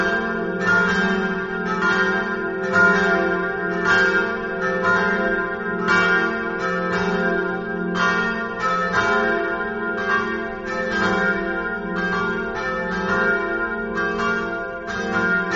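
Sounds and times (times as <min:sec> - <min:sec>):
bells ringing: 0:00.0 - 0:15.5.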